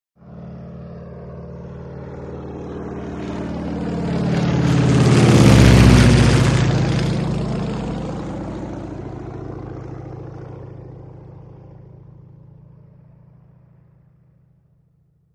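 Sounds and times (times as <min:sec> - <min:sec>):
prop plane very low engine growl: 0:00.2 - 0:15.3.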